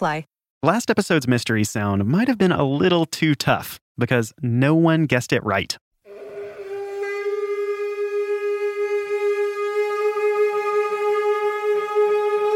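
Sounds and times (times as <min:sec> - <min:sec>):
speech: 0:00.0 - 0:05.8
kangling Tibetan Buddhist ritual thigh bone horn sustained tone: 0:06.1 - 0:12.5.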